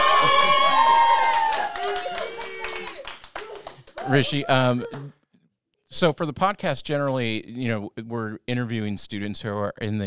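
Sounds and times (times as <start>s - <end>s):
audience clapping: 0.0s - 5.1s
speech: 4.1s - 5.2s, 5.9s - 10.0s.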